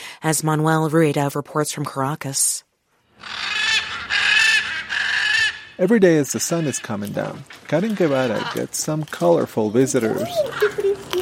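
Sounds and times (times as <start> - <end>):
speech: 0.2 - 2.7, 5.8 - 10.8
blue-and-gold macaw squawking: 3.1 - 8.7, 10.2 - 11.2.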